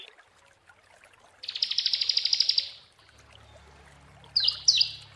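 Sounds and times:
prinia song: 1.5 - 2.9, 4.3 - 5.1.

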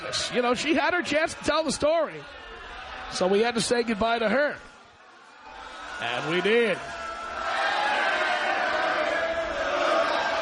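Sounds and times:
crowd yelling: 0.0 - 10.3
speech: 0.1 - 2.5, 3.1 - 4.7, 6.0 - 7.0
crowd singing: 7.4 - 10.3.

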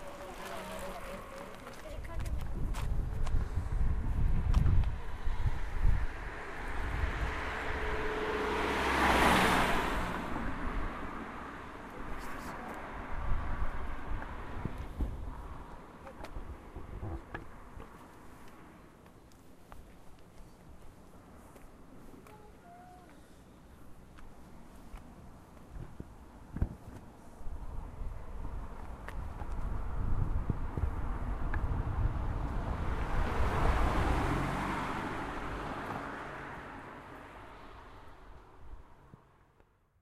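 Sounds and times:
leaves rustling: 0.0 - 2.1
water: 0.0 - 2.1
traffic: 0.0 - 40.0
wind: 0.0 - 40.0.

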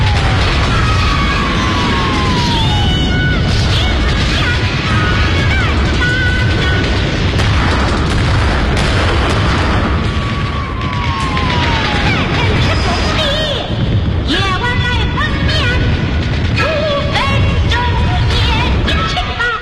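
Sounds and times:
artillery shells exploding nearby: 0.0 - 19.5.

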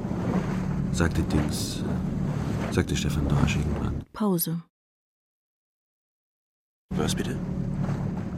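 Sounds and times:
water parting at the bow of a boat on a river: 0.0 - 4.0, 6.9 - 8.3
speech: 0.9 - 2.1, 2.7 - 4.7, 6.9 - 7.6.

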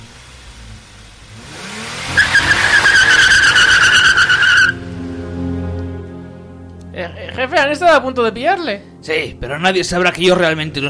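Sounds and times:
car engine rumble as car speeds away: 0.0 - 9.5
car tires squealing in a skid: 1.5 - 5.0
speech: 7.5 - 10.8.

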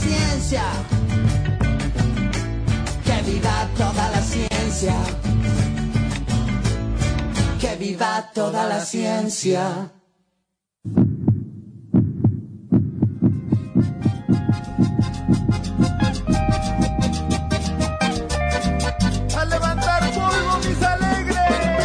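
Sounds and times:
music: 0.0 - 7.9, 13.2 - 21.8
speech: 0.5 - 1.0, 7.7 - 10.0
deep heartbeat thumps: 10.9 - 17.5.

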